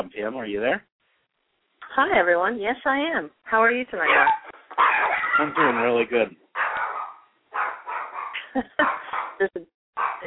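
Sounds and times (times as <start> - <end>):
speech: 0.0 - 0.9, 1.9 - 4.4, 5.0 - 6.4, 8.5 - 10.2
dog barking in the distance: 4.0 - 9.4, 10.0 - 10.2.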